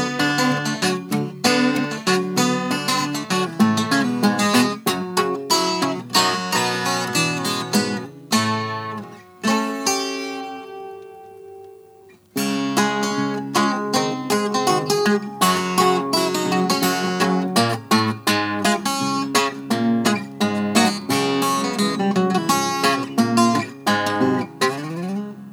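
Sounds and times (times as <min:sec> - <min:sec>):
Harmony H912 redburst guitar: 0:00.0 - 0:25.5.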